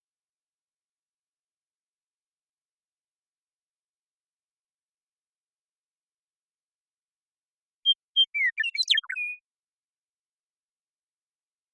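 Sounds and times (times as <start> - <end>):
Western meadowlark song: 7.8 - 9.4.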